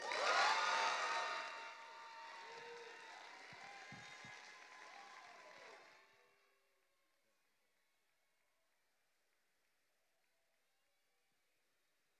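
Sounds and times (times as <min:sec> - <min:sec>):
audience applause: 0:00.0 - 0:06.4.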